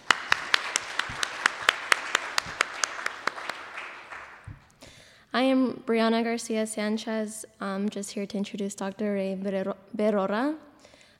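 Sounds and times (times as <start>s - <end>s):
round of applause: 0.0s - 4.8s
speech: 5.4s - 10.7s.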